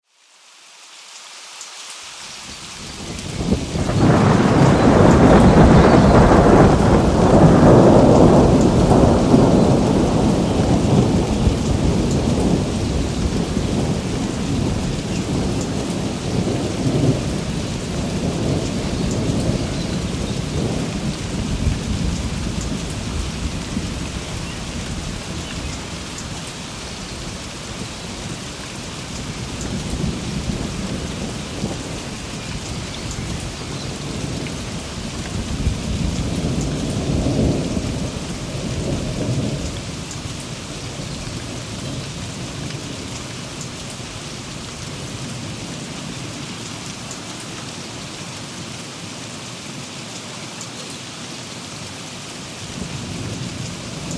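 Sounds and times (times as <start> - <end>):
thunderstorm: 2.9 - 43.8, 52.8 - 54.1.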